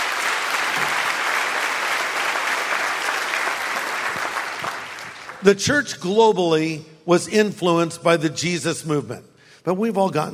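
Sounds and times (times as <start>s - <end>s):
audience clapping: 0.0s - 5.6s
speech: 5.4s - 10.3s.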